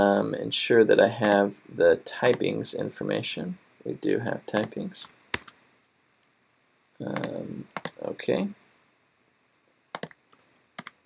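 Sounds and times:
speech: 0.0 - 5.2, 7.0 - 8.6
typing code on a computer keyboard: 5.3 - 5.6, 7.2 - 8.0, 9.9 - 11.0.

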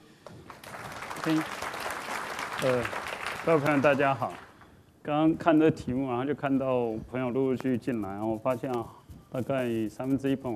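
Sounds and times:
audience applause: 0.2 - 4.7
speech: 1.2 - 1.6, 2.6 - 4.4, 5.0 - 10.5.

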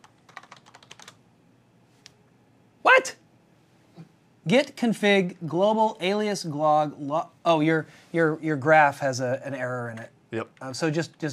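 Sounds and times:
computer keyboard clicking: 0.0 - 1.2
speech: 4.5 - 11.3.

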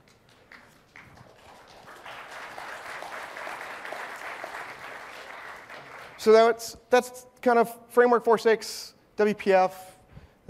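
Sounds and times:
soft scattered audience applause: 0.0 - 6.3
speech: 6.2 - 9.9.

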